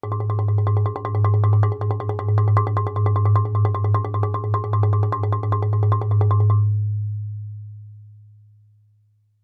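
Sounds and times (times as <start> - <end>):
marimba roll fortissimo on A flat 2: 0.0 - 6.7.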